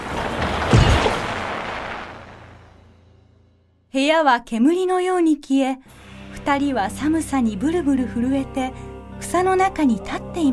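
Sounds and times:
rustling noise: 0:00.0 - 0:02.7
speech: 0:03.9 - 0:10.5.

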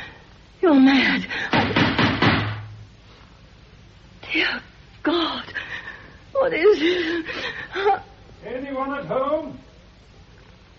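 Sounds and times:
speech: 0:00.6 - 0:01.4, 0:06.5 - 0:08.0, 0:08.6 - 0:09.6
dull heavy knocks on a wall: 0:01.5 - 0:02.8.

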